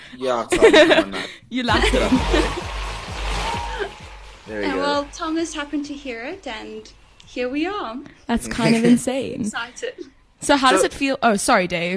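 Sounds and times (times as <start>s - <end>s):
speech: 0.1s - 2.8s, 4.5s - 11.9s
laughter: 0.4s - 2.8s, 8.5s - 9.2s
clapping in the studio: 1.7s - 5.1s.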